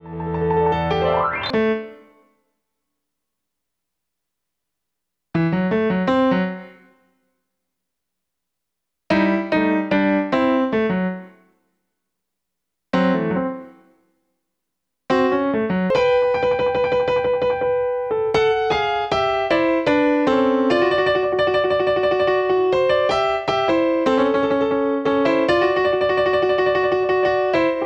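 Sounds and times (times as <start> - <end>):
piano: 0.0 - 2.2, 5.4 - 7.0, 9.1 - 11.4, 13.0 - 13.9, 15.1 - 27.8.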